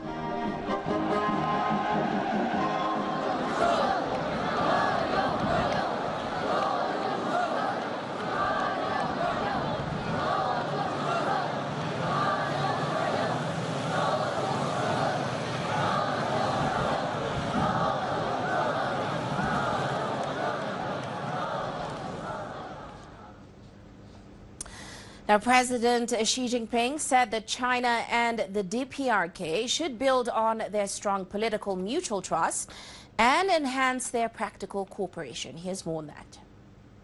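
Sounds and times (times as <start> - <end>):
crowds in DPRK streets cheering to welcome President Xi: 0.0 - 23.4
speech: 25.3 - 36.4.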